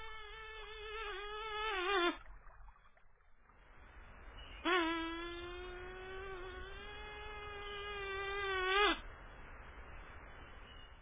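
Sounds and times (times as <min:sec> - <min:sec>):
mosquito buzz: 0:00.0 - 0:02.2, 0:04.6 - 0:09.0.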